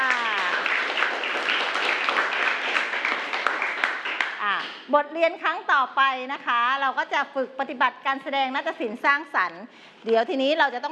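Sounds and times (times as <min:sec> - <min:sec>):
students applauding in classroom: 0:00.0 - 0:04.6
speech: 0:04.9 - 0:10.9.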